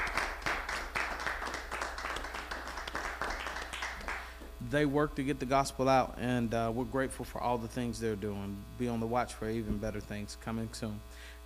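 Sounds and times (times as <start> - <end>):
audience hand clapping: 0.0 - 4.5
speech: 4.7 - 11.4.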